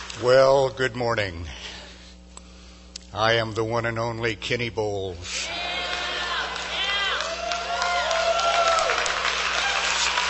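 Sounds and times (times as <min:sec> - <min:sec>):
speech: 0:00.2 - 0:01.7, 0:03.1 - 0:05.6
high whoops and shouts from several voices: 0:05.4 - 0:10.2
audience clapping: 0:05.5 - 0:10.2.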